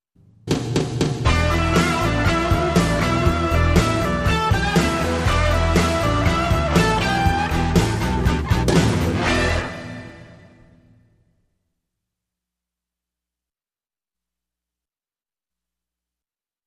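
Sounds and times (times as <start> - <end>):
Fender Stratocaster electric guitar: 1.2 - 10.7.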